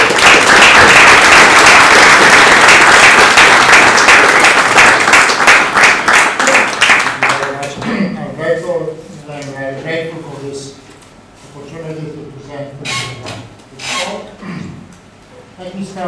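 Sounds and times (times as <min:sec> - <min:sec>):
audience applause: 0:00.0 - 0:07.8.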